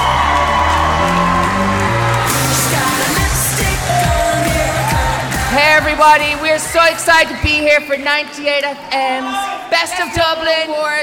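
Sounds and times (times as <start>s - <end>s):
crowd cheering to welcome a pop duo at a radio awards show: 0.0s - 7.6s
speech: 6.0s - 11.0s.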